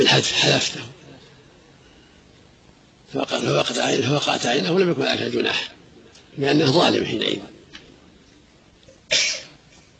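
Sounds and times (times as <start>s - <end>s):
speech: 0.0s - 0.9s, 3.1s - 5.8s, 6.4s - 7.5s
sneeze: 9.1s - 9.6s.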